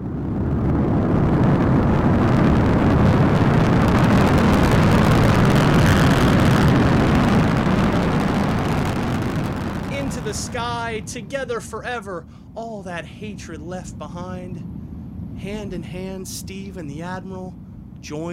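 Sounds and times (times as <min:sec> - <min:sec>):
rocket blasting off after a countdown: 0:00.0 - 0:18.3
speech: 0:11.4 - 0:14.7, 0:15.4 - 0:18.3.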